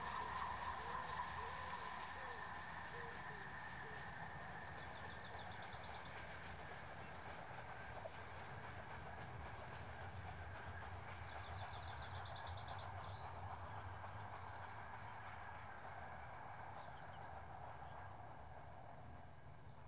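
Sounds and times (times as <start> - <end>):
single diesel train passing: 0.0 - 18.9.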